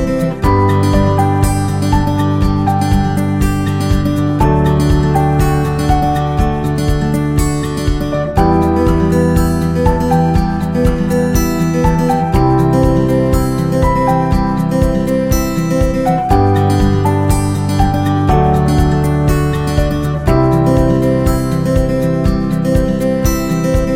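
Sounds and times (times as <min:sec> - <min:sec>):
optimistic acoustic guitar music: 0:00.0 - 0:23.9.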